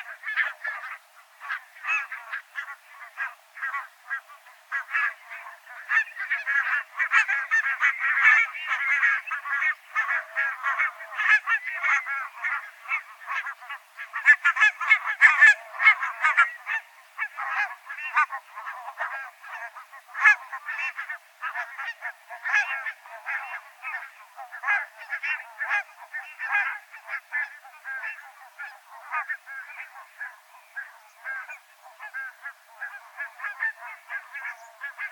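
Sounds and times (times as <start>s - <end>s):
barnacle geese chattering with nasal yaps: 0.0s - 35.1s.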